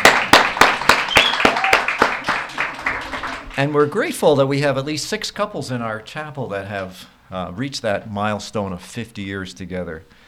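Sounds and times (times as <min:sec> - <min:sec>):
crowd clapping: 0:00.0 - 0:04.0
high whoop: 0:01.1 - 0:02.0
speech: 0:03.6 - 0:10.2.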